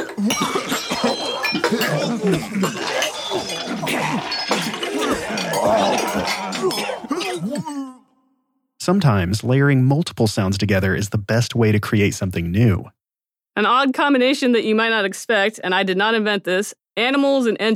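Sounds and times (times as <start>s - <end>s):
crowd of people gagging and retching: 0.0s - 7.8s
speech: 0.2s - 0.7s, 8.8s - 13.0s, 13.6s - 17.7s.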